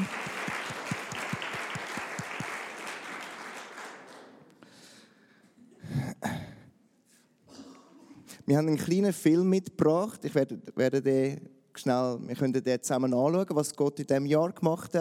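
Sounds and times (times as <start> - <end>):
audience applause: 0.0 - 4.4
speech: 8.5 - 14.9.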